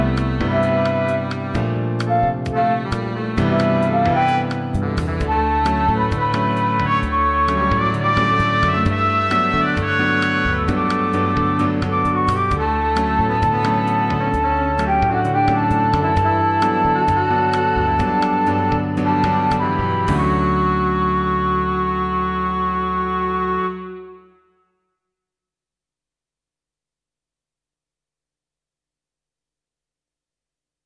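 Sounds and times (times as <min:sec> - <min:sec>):
instrumental backing track without maracas: 0:00.0 - 0:24.4.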